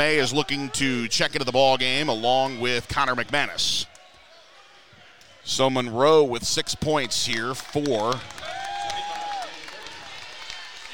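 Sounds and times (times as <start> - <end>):
speech: 0.0 - 3.9, 5.4 - 8.6
round of applause from crowd: 7.0 - 10.9.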